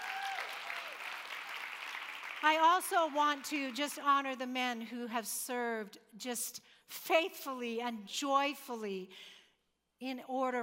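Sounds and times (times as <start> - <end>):
audience clapping: 0.0 - 4.0
speech: 2.4 - 9.4, 10.0 - 10.6.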